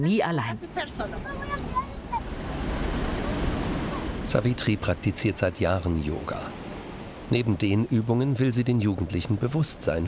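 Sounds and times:
speech: 0.0s - 1.8s, 4.3s - 6.6s, 7.3s - 10.0s
Pacific ocean waves: 0.0s - 10.0s.

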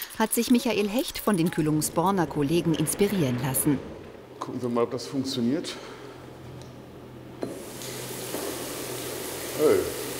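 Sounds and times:
speech: 0.2s - 6.0s, 9.6s - 10.0s
water running from a shower: 7.4s - 10.1s.

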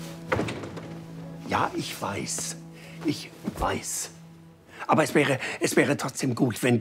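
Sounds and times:
door closing: 0.2s - 1.2s
speech: 1.5s - 4.2s, 4.9s - 6.7s.

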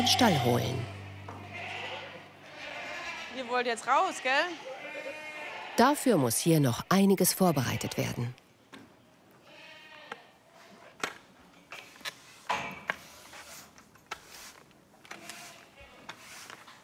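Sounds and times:
speech: 0.0s - 1.0s, 3.5s - 4.8s, 5.8s - 8.4s
goats bleating in a stable: 0.0s - 6.0s, 7.4s - 8.3s, 9.4s - 10.3s.

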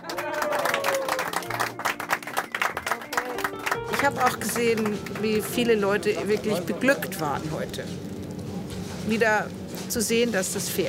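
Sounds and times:
cheering voices: 0.0s - 1.5s
audience applause: 0.0s - 5.7s
speech: 4.0s - 8.0s, 9.1s - 10.8s.

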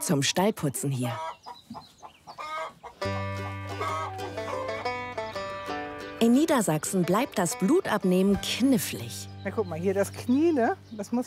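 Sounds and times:
speech: 0.0s - 1.9s, 6.2s - 11.2s
chickens clucking: 0.9s - 6.0s.

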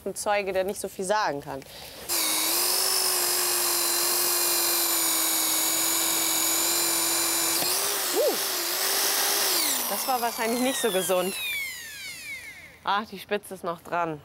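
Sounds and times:
speech: 0.0s - 2.2s, 9.9s - 11.6s, 12.8s - 14.2s
small high-speed drill whining through a hole: 2.1s - 12.8s.

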